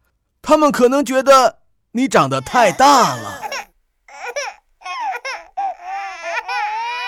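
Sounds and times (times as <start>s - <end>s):
speech: 0.5s - 3.4s
cartoon babies crying out in fright: 2.2s - 7.0s.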